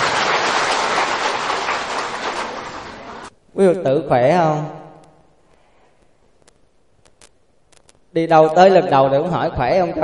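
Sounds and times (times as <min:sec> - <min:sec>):
audience applause: 0:00.0 - 0:03.3
speech: 0:03.6 - 0:04.8, 0:08.2 - 0:10.0.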